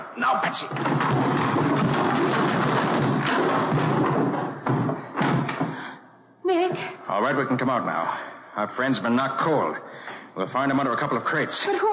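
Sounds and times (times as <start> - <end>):
speech: 0.2 - 1.6, 7.1 - 11.9
barrels being pushed over: 0.5 - 5.8.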